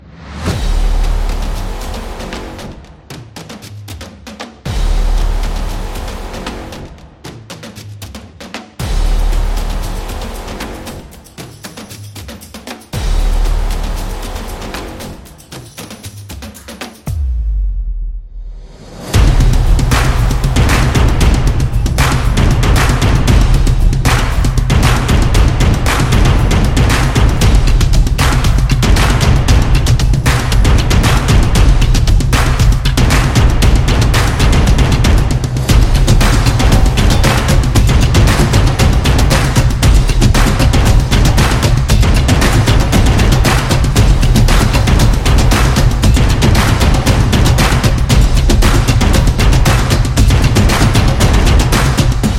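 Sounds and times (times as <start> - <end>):
street percussion background music for sport and dance: 0.5 - 17.4, 19.0 - 52.3.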